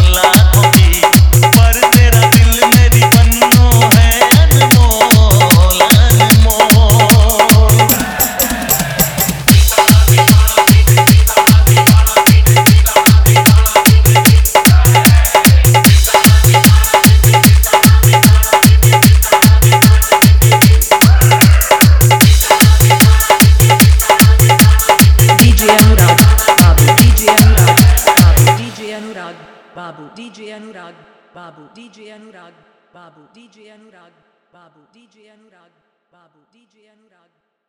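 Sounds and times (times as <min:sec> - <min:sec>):
Hindi hard dholak bass mix: 0:00.0 - 0:29.1.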